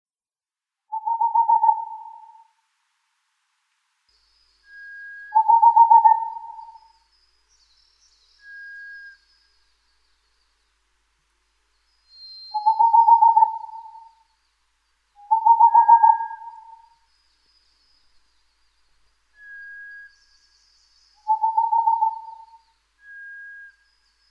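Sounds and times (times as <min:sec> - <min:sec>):
Boreal Owl singing trills of hoots: 0:00.9 - 0:02.6, 0:05.3 - 0:07.0, 0:12.5 - 0:14.3, 0:15.2 - 0:17.0, 0:21.2 - 0:22.7.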